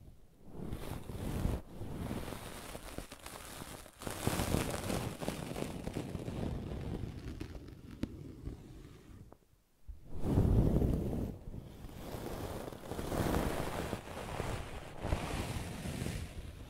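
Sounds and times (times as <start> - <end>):
brushing and scratching: 0.5 - 9.3, 10.2 - 16.5.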